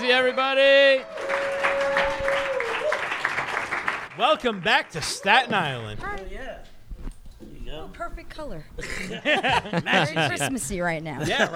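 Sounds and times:
audience applause at a live comedy event: 0.0s - 6.5s
speech: 0.1s - 1.6s, 4.2s - 6.7s, 7.7s - 11.5s
laughter: 8.5s - 11.5s.

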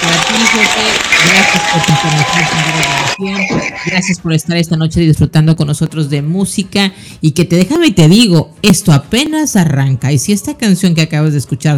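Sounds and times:
crowd applause: 0.0s - 3.8s
speech: 0.5s - 11.7s.

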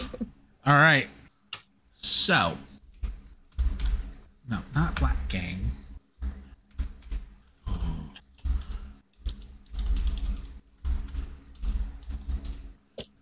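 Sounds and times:
speech: 0.7s - 1.2s, 2.3s - 2.7s, 4.5s - 5.8s
typing on a computer keyboard: 3.5s - 4.1s, 8.2s - 13.1s.

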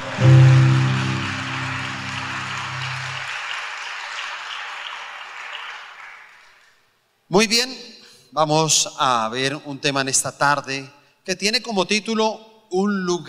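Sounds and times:
low sustained musical tone: 0.0s - 3.3s
audience applause: 0.0s - 6.7s
speech: 7.3s - 7.8s, 8.4s - 13.2s.

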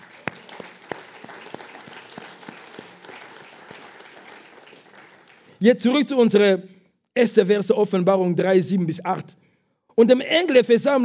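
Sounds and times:
audience applause: 0.0s - 5.6s
speech: 5.6s - 9.4s, 10.0s - 11.0s.

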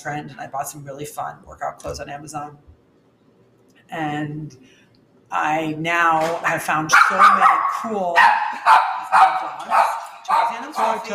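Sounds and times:
speech: 0.0s - 2.8s, 3.9s - 11.1s
dog barking: 6.9s - 11.1s.

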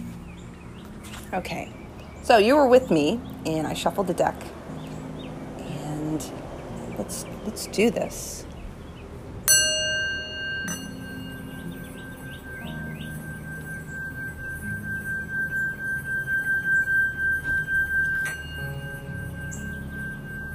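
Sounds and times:
speech: 1.3s - 4.6s, 7.1s - 8.5s
singing bowl struck and ringing: 9.5s - 20.5s.

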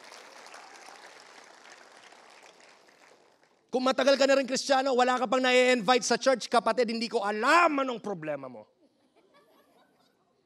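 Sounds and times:
church congregation applause: 0.0s - 3.6s
speech: 3.7s - 8.8s.

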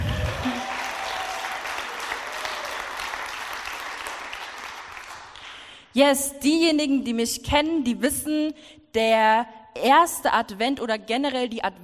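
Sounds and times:
audience applause: 0.0s - 5.7s
speech: 6.0s - 11.8s.

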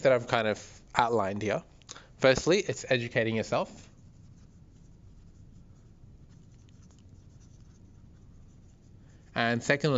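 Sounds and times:
speech: 0.0s - 3.9s, 9.4s - 9.9s
notes being written down on paper: 3.3s - 9.5s.

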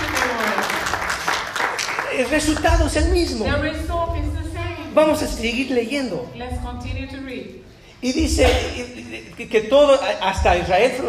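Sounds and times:
applause: 0.0s - 3.0s
speech: 2.2s - 4.4s, 5.0s - 11.0s.

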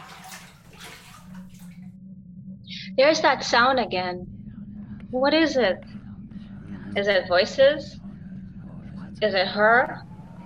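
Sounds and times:
water splashing and pouring while washing body with neem bush and egg: 0.0s - 1.8s
speech: 3.0s - 4.4s, 5.1s - 5.9s, 6.9s - 8.0s, 9.2s - 10.1s.

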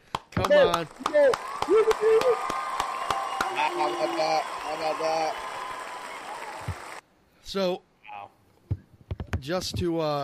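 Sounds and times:
people clapping: 0.0s - 7.0s
speech: 0.4s - 2.6s, 3.5s - 5.4s, 7.5s - 7.9s, 9.4s - 10.2s.

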